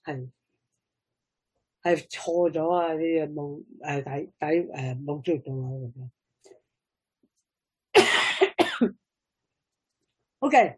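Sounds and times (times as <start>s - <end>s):
speech: 0.1s - 0.4s, 1.8s - 6.2s, 8.8s - 9.0s, 10.4s - 10.7s
coughing from an itchy throat: 7.9s - 9.0s.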